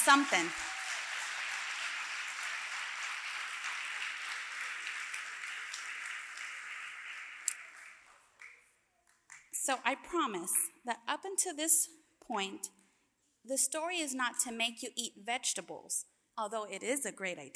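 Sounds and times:
speech: 0.0 - 0.7, 9.7 - 12.8, 13.4 - 17.5
round of applause: 0.0 - 9.6.

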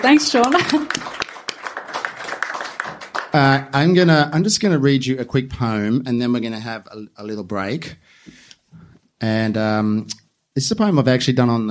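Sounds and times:
speech: 0.0 - 1.2, 3.3 - 8.4, 9.2 - 11.6
audience applause: 0.0 - 3.6.

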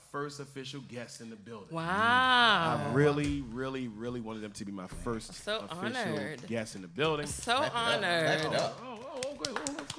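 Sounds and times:
speech: 0.1 - 9.9
hands clapping: 5.8 - 9.9.

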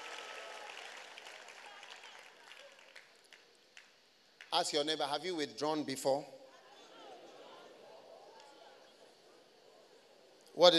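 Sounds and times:
audience clapping: 0.0 - 4.7
speech: 4.5 - 6.4, 10.6 - 10.7.

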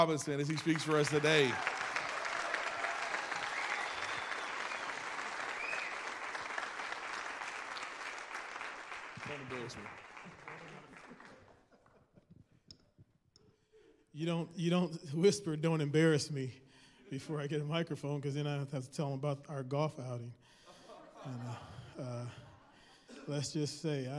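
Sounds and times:
speech: 0.0 - 1.8, 9.5 - 10.4, 14.2 - 20.6, 21.2 - 22.4, 23.2 - 24.1
audience applause welcoming a pastor: 0.0 - 11.7
laughter: 20.6 - 23.7.

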